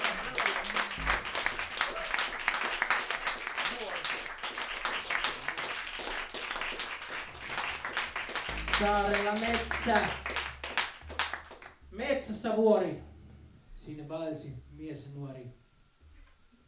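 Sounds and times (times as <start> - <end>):
audience applause: 0.0 - 11.8
speech: 8.8 - 10.2, 12.0 - 13.1, 13.8 - 15.6.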